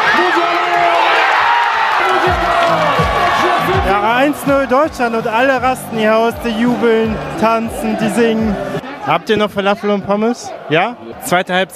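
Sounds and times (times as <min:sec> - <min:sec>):
crowd applauding after national anthem: 0:00.0 - 0:08.8
speech: 0:04.2 - 0:11.7.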